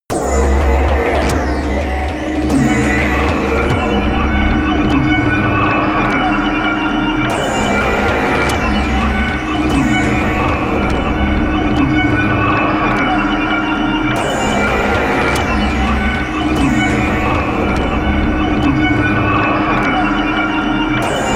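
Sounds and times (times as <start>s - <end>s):
drone sound: 0.1s - 21.3s.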